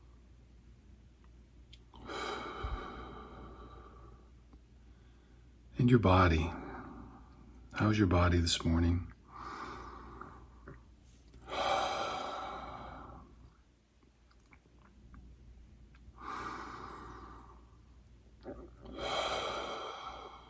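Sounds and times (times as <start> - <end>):
deep cleansing breaths during a guided relaxation: 2.0 - 5.7, 6.4 - 7.7, 9.3 - 10.8, 11.4 - 13.6, 16.2 - 17.9, 18.5 - 20.4
speech: 5.8 - 6.6, 7.8 - 9.1.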